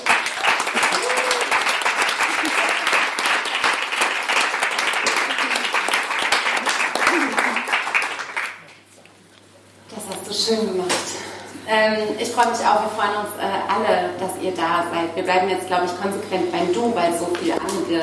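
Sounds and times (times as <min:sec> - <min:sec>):
crowd applause: 0:00.0 - 0:08.7
speech: 0:10.5 - 0:10.9, 0:11.7 - 0:18.0.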